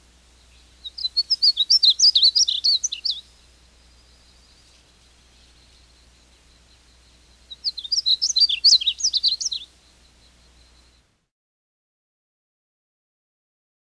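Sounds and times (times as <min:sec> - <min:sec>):
Painted Bunting sounds: 0:00.0 - 0:11.2.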